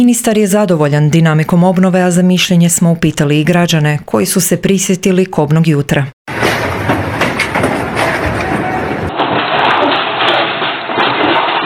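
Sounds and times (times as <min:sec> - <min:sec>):
speech: 0:00.0 - 0:06.5
magnitude 5.5 earthquake rumble: 0:06.3 - 0:11.6.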